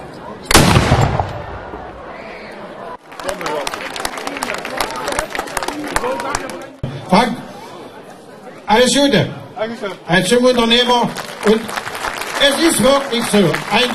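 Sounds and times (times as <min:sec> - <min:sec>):
crowd noise with voices: 0:00.0 - 0:13.9
ceremonial gun salute cannon blast fired by battalion: 0:00.5 - 0:02.0
scattered clapping: 0:03.0 - 0:06.8, 0:10.9 - 0:13.9
speech: 0:08.8 - 0:11.8, 0:12.4 - 0:13.9.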